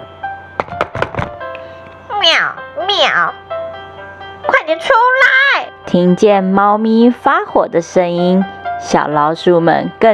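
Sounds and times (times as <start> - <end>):
knocking on a door: 0.6 - 1.4
faint sustained musical tone: 1.4 - 10.1
speech: 3.0 - 3.4, 4.7 - 10.1.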